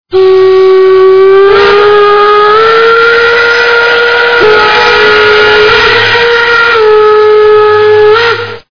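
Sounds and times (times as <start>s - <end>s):
whistle: 0.1s - 8.7s.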